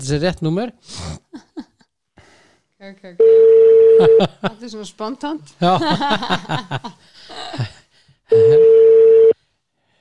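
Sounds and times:
speech: 0.0 - 1.5, 2.8 - 8.7
telephone ringing tone on an outgoing call: 3.2 - 4.2, 8.3 - 9.4
laughter: 5.6 - 8.7.

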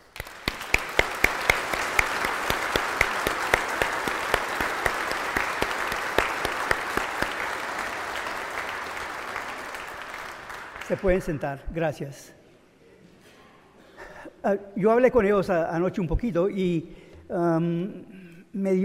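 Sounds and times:
audience applause: 0.0 - 11.4
speech: 10.9 - 12.4, 14.4 - 18.8.

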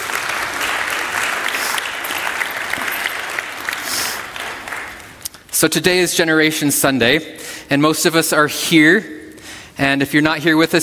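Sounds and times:
audience applause: 0.0 - 5.2
speech: 5.6 - 9.2, 9.8 - 10.8.

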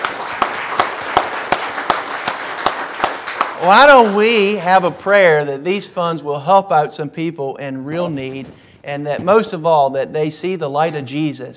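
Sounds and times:
round of applause: 0.0 - 5.4
speech: 3.6 - 11.5.

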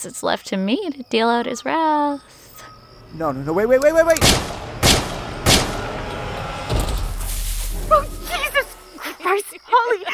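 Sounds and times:
speech: 0.0 - 2.4, 3.1 - 4.6
low rumble: 2.8 - 9.0
gunshots: 4.2 - 6.1.

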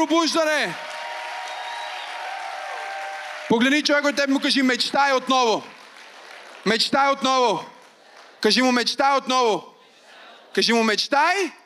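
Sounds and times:
speech: 0.0 - 0.9, 3.5 - 5.8, 6.6 - 7.7, 8.4 - 9.7, 10.5 - 11.6
audience clapping: 0.0 - 9.0.

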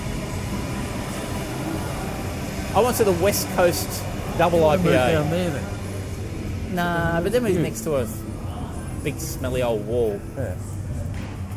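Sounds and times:
train passing: 0.0 - 8.3
speech: 2.8 - 5.8, 6.7 - 8.2, 9.0 - 10.7.

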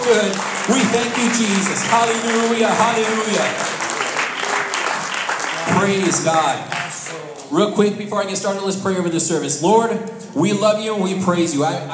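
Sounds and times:
crowd clapping hands: 0.0 - 7.5
speech: 0.1 - 3.8, 5.8 - 6.8, 7.5 - 11.9.

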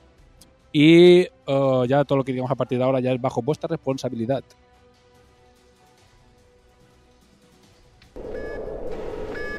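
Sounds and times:
speech: 0.7 - 4.6
buzzing tone of a spoiler-warning sound effect: 8.2 - 9.5
short high beeps of a spoiler-warning sound effect: 8.2 - 9.5.

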